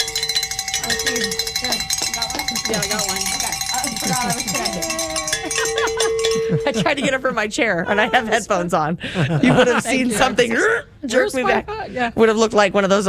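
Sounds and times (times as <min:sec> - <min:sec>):
bells being rung: 0:00.0 - 0:08.3
laughter: 0:00.8 - 0:10.8
speech: 0:02.5 - 0:13.0.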